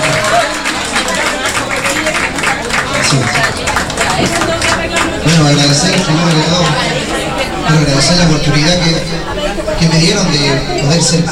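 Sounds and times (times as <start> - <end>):
applause: 0.0 - 7.4
speech: 5.4 - 7.0, 7.7 - 11.3.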